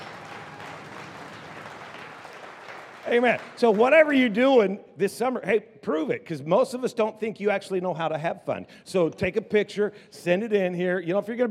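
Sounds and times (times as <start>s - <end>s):
audience applause: 0.0s - 4.3s
speech: 3.1s - 11.5s.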